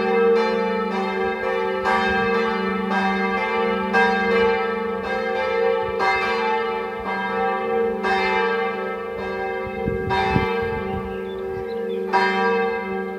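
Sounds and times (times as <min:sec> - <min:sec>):
church bells ringing a Sunday call: 0:00.0 - 0:13.1.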